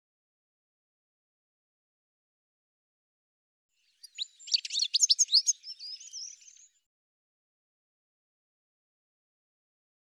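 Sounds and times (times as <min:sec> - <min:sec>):
bird twittering and whistling: 0:04.0 - 0:06.8.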